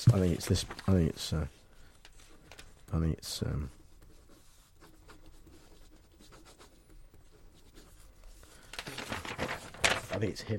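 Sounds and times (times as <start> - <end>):
speech: 0.0 - 1.6, 2.9 - 3.8, 10.2 - 10.5
handwriting pen strokes on paper: 3.7 - 8.4.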